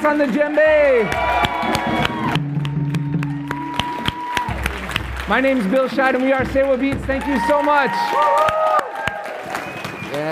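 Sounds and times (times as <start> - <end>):
speech: 0.0 - 2.5, 5.3 - 8.6
crowd applauding: 0.0 - 10.3
cheers and whoops: 0.8 - 4.7, 7.2 - 10.3.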